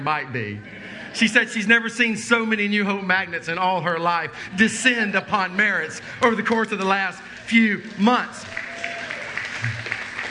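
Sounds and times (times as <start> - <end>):
speech: 0.0 - 8.6
audience applause: 5.5 - 10.3.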